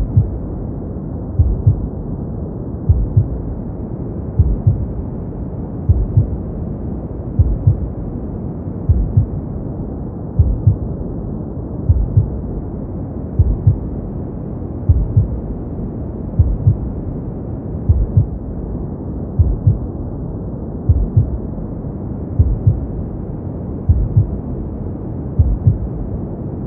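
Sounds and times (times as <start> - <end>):
womb sounds: 0.0 - 0.4, 1.4 - 1.9, 2.9 - 3.4, 4.4 - 4.9, 5.9 - 6.4, 7.4 - 7.9, 8.9 - 9.4, 10.4 - 10.8, 13.4 - 13.9, 16.4 - 16.8, 17.9 - 18.4, 19.4 - 19.9, 20.9 - 21.4, 22.4 - 22.9, 23.9 - 24.4, 25.4 - 25.9
gentle white noise: 0.0 - 26.6.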